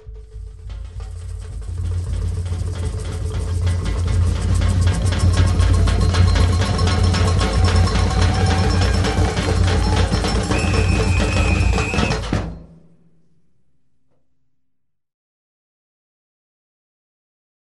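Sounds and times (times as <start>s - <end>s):
batucada drumming: 0.1s - 12.7s.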